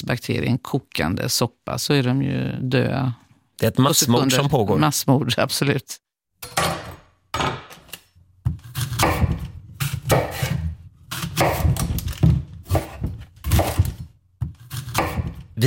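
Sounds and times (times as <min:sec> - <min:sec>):
speech: 0:00.1 - 0:06.6
knife chopping on a cutting board: 0:08.5 - 0:15.5.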